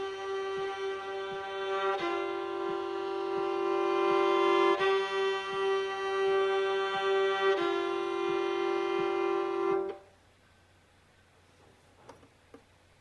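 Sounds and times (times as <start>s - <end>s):
violin double stops accompaniment: 0.0s - 10.1s.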